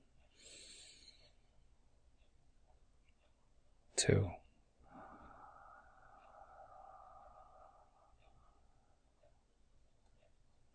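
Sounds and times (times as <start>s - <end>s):
deep breath in during a guided relaxation exercise: 0.4s - 1.3s, 4.8s - 9.4s
speech: 4.0s - 4.4s.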